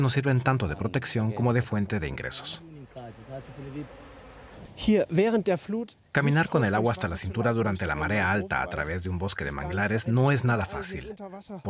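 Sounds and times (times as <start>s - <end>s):
speech: 0.0s - 2.7s, 3.4s - 4.0s, 4.7s - 11.6s
bees buzzing: 1.9s - 5.0s.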